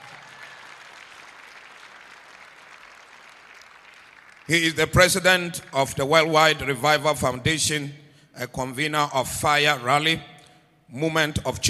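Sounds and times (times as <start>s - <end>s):
audience clapping: 0.0s - 5.8s
speech: 4.5s - 10.3s, 10.9s - 11.6s.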